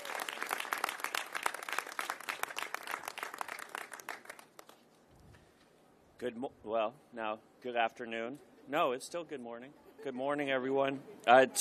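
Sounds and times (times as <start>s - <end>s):
audience applause: 0.0s - 4.8s
speech: 6.2s - 11.5s.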